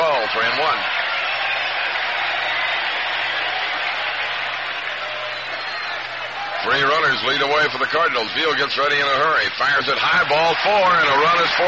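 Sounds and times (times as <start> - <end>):
baseball crowd hooting and hollering: 0.0 - 8.4, 9.6 - 11.6
speech: 6.6 - 11.6.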